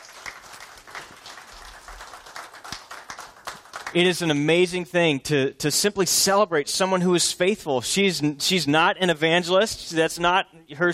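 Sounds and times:
audience applause: 0.0s - 4.0s
speech: 3.9s - 10.9s.

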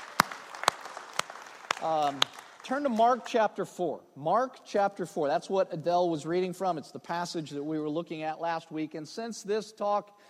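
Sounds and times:
round of applause: 0.0s - 3.3s
speech: 1.8s - 10.2s.

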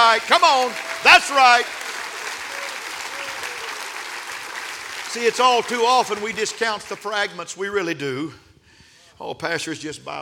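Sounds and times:
audience clapping hands: 0.0s - 7.4s
speech: 0.1s - 1.8s, 5.2s - 8.4s, 9.2s - 10.1s.

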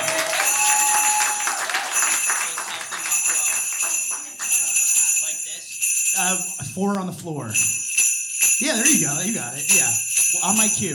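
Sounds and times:
audience applause: 0.0s - 4.9s
speech: 6.2s - 7.7s, 8.6s - 10.9s.

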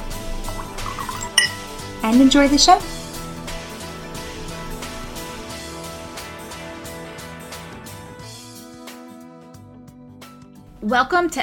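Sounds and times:
wine glasses clinking: 0.5s - 1.8s
speech: 2.0s - 2.9s, 10.9s - 11.4s.

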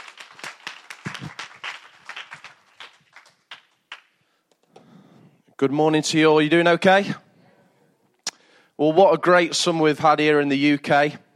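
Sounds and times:
audience round of applause: 0.0s - 4.2s
speech: 5.6s - 7.2s, 8.8s - 11.2s.

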